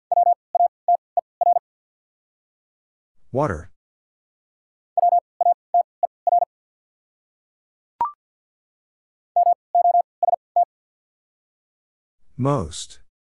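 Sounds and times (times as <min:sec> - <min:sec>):
Morse code tones spelling a word: 0:00.1 - 0:01.6, 0:05.0 - 0:06.5, 0:09.4 - 0:10.7
speech: 0:03.3 - 0:03.7, 0:12.4 - 0:13.0.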